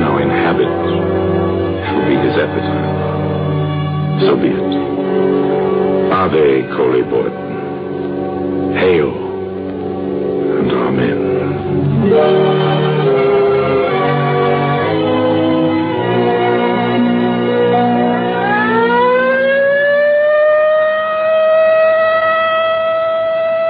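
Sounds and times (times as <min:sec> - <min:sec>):
stepped droning tones: 0:00.0 - 0:23.6
speech: 0:00.5 - 0:01.3, 0:02.4 - 0:03.0, 0:04.2 - 0:04.8, 0:06.2 - 0:07.4
civil defense practice alert siren: 0:17.4 - 0:23.6.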